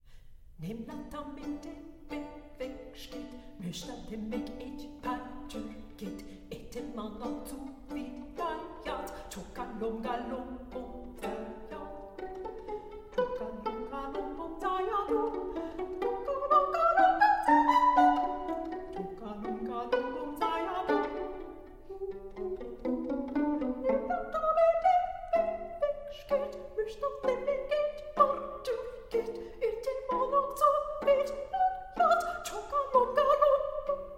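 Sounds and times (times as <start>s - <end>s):
duo for two violins playing pizzicato: 0.8s - 34.1s.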